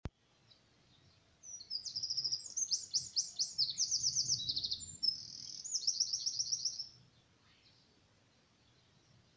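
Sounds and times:
Eurasian wren singing: 1.0 - 7.0.

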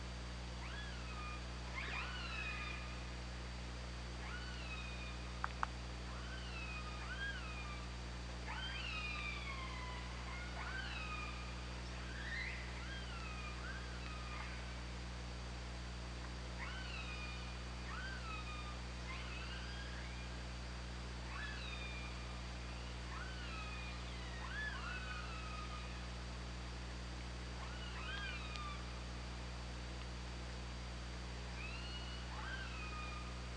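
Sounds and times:
low hydrophone hum: 0.0 - 33.5
killer whale pulsed calls: 0.6 - 3.0, 4.2 - 5.3, 6.1 - 14.8, 16.6 - 20.4, 21.2 - 26.1, 27.6 - 29.0, 31.6 - 33.5.

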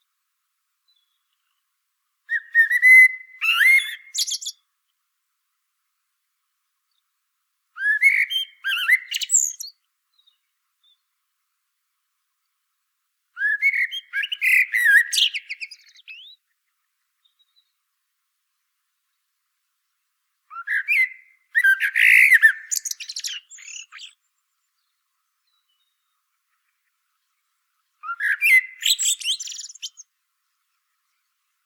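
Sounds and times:
common blackbird singing: 2.3 - 4.6, 7.8 - 11.0, 13.4 - 16.4, 20.5 - 26.2, 28.0 - 30.1.

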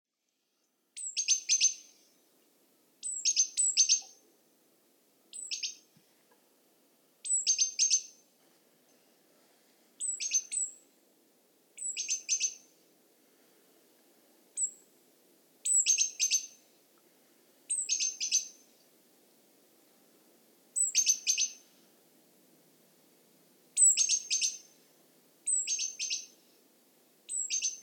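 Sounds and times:
Great tit calls: 1.0 - 2.1, 3.0 - 4.2, 5.3 - 5.8, 7.2 - 8.2, 10.0 - 10.8, 11.8 - 12.6, 15.6 - 16.6, 17.7 - 18.6, 20.8 - 21.6, 23.8 - 24.7, 25.5 - 26.4, 27.3 - 27.8.

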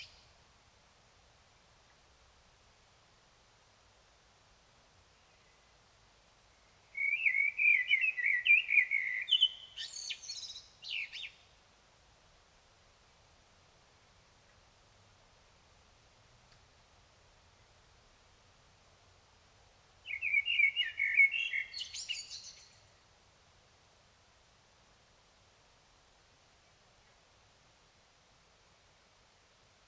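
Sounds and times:
common blackbird song: 0.0 - 0.4, 5.1 - 5.8, 6.5 - 11.6, 20.0 - 23.0.

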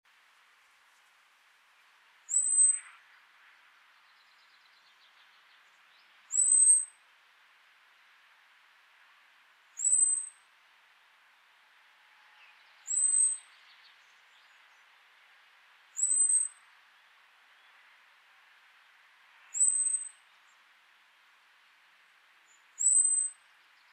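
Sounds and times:
background hiss: 0.1 - 23.9
common blackbird high whistled call: 2.3 - 2.9, 6.3 - 6.9, 9.8 - 10.4, 12.8 - 13.8, 16.0 - 16.6, 19.5 - 20.2, 22.5 - 23.4.

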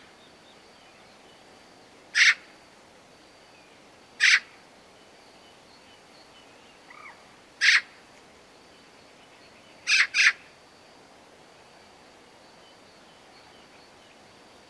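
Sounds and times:
Eurasian magpie harsh rasping calls, Pica pica: 2.2 - 2.4, 4.2 - 4.5, 7.0 - 7.9, 9.9 - 10.4.

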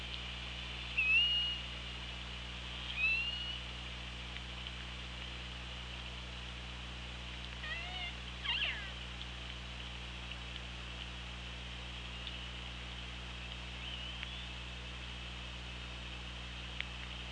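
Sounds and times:
steady hum: 0.0 - 17.3
killer whale whistled calls: 1.0 - 1.6, 2.9 - 3.6, 7.7 - 8.9.

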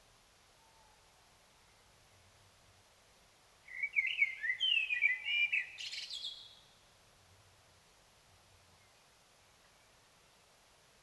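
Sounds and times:
common blackbird song: 3.7 - 6.8.

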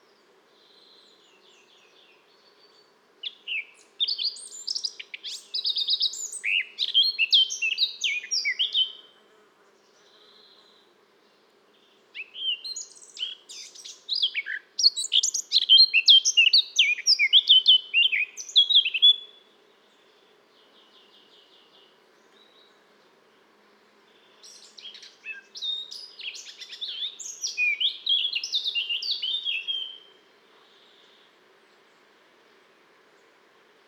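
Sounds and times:
Eurasian blackcap singing: 3.2 - 9.0, 12.2 - 19.3, 24.4 - 30.1.

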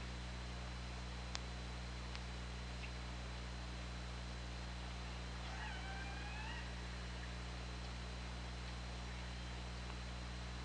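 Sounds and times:
low hum and hiss: 0.0 - 10.6
killer whale call: 5.4 - 6.8.

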